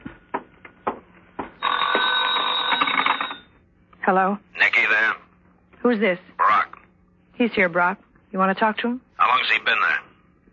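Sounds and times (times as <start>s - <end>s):
telephone bell ringing with a loud continuous trill: 1.6s - 3.6s
speech: 4.0s - 5.2s, 5.8s - 6.3s, 7.4s - 10.0s.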